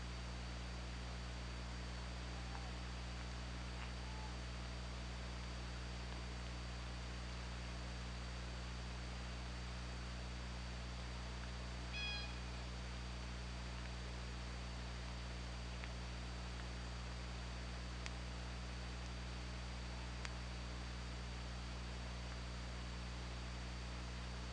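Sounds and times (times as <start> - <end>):
constant low hum: 0.0 - 24.5
orca call: 12.0 - 12.6.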